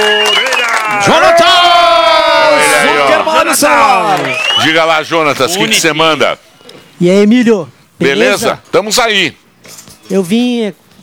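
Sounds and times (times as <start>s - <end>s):
applause: 0.0s - 4.9s
audience cheering loudly with whoops and raised voices: 0.0s - 5.2s
speech: 3.4s - 10.8s.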